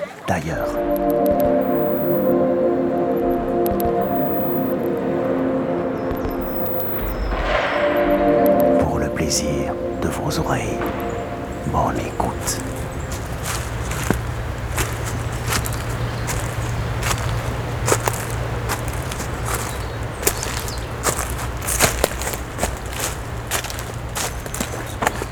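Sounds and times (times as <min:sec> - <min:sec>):
speech: 0:00.3 - 0:01.3, 0:09.3 - 0:11.0, 0:11.7 - 0:12.8
steady low hum: 0:00.7 - 0:25.2
footsteps on a carpet of leaves: 0:11.9 - 0:25.2.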